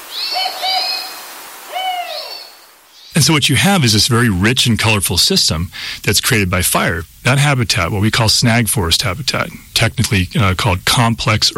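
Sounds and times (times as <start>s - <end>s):
spotted owl hooting: 0.0s - 3.4s
speech: 3.2s - 11.5s.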